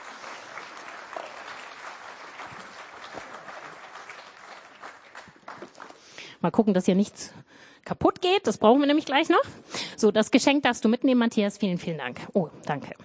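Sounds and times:
audience applause: 0:00.0 - 0:06.1
speech: 0:06.4 - 0:13.0.

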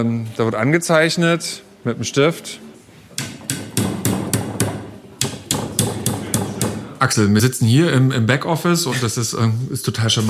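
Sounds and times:
speech: 0:00.0 - 0:02.7, 0:07.0 - 0:10.2
hammering in wooden dowels: 0:03.2 - 0:07.0.

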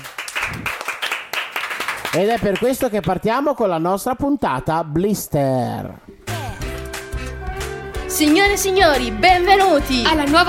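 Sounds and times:
applause: 0:00.0 - 0:03.1
speech: 0:02.1 - 0:06.2, 0:08.2 - 0:10.4.

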